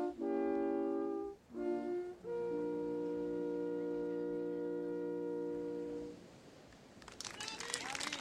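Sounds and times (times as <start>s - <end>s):
quartet playing: 0.0s - 6.2s.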